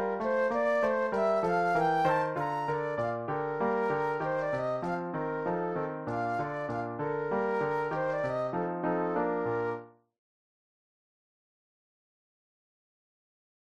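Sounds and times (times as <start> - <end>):
solo flute playing a classical German dance: 0.0 - 9.8.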